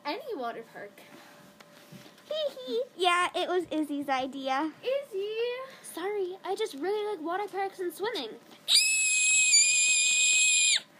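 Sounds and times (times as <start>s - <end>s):
speech: 0.4s - 8.8s
excited high-pitched squealing scream: 8.7s - 10.9s.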